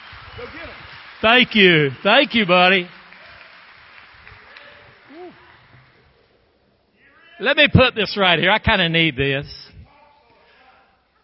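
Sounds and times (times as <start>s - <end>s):
audience applause: 0.0s - 6.2s
speech: 0.4s - 3.0s, 7.4s - 9.6s.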